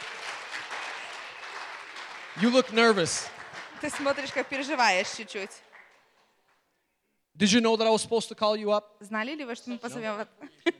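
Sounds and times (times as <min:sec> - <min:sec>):
audience applause: 0:00.0 - 0:06.6
speech: 0:02.4 - 0:05.7, 0:07.4 - 0:10.7.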